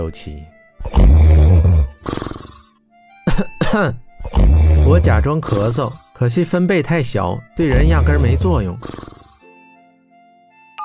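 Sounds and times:
speech: 0:00.0 - 0:02.3, 0:03.4 - 0:04.0, 0:04.9 - 0:09.0
heavy snoring: 0:00.8 - 0:02.8, 0:04.1 - 0:06.0, 0:07.7 - 0:09.5.

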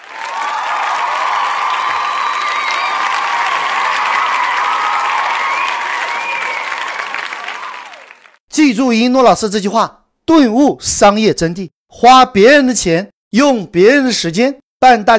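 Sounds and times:
thunderous applause: 0:00.0 - 0:08.4
speech: 0:08.7 - 0:15.1.

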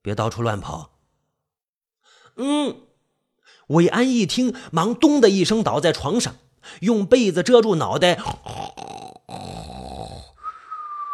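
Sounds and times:
speech: 0:00.0 - 0:00.9, 0:02.4 - 0:02.9, 0:03.7 - 0:09.7
person snoring: 0:08.2 - 0:10.6
whistling exhale: 0:10.4 - 0:11.1.

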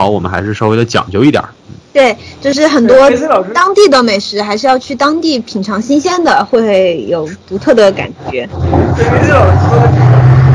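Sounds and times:
speech: 0:00.0 - 0:10.5
loud motorcycle engine: 0:08.6 - 0:10.5.

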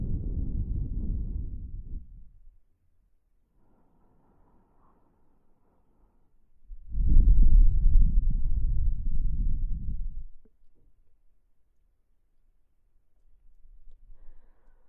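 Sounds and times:
wind blowing past the ear: 0:00.0 - 0:02.5, 0:06.7 - 0:10.3.

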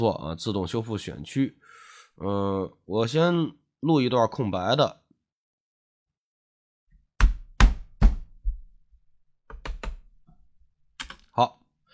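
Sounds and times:
speech: 0:00.0 - 0:05.0, 0:11.4 - 0:11.6
fist banging on desk: 0:07.2 - 0:08.7
keyboard typing: 0:09.5 - 0:10.2, 0:11.0 - 0:11.3.

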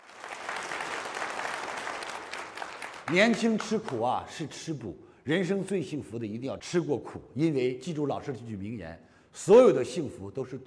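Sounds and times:
audience applause: 0:00.0 - 0:04.0
speech: 0:03.1 - 0:10.6.

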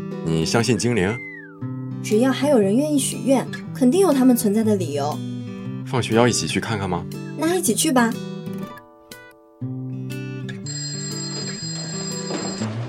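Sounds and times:
speech: 0:00.3 - 0:01.3, 0:02.0 - 0:05.3, 0:05.9 - 0:08.6
phone text message alert chimes: 0:10.7 - 0:12.7.

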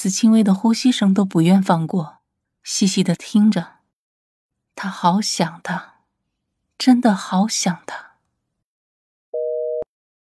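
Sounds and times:
speech: 0:00.0 - 0:03.8, 0:04.8 - 0:05.9, 0:06.8 - 0:08.1
telephone busy beeps after hang-up: 0:09.4 - 0:10.2.

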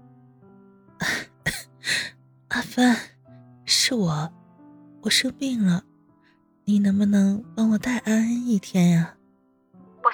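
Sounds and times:
person coughing: 0:01.0 - 0:01.7
speech: 0:01.8 - 0:03.1, 0:03.9 - 0:04.4, 0:05.0 - 0:05.9, 0:06.7 - 0:09.2.

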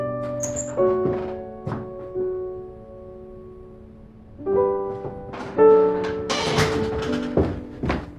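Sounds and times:
door being opened: 0:00.2 - 0:01.9, 0:04.8 - 0:07.8.

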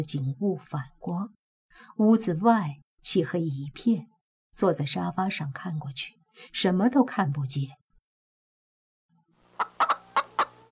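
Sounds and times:
speech: 0:00.0 - 0:07.8
free-range gamecock in the yard crowing: 0:09.6 - 0:10.7.

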